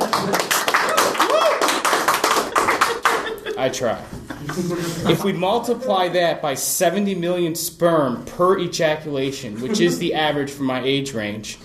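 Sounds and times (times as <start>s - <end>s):
crowd applauding: 0.0s - 3.6s
laughter: 0.0s - 6.2s, 9.4s - 10.3s
person whooping: 0.8s - 1.9s
speech: 3.6s - 11.6s.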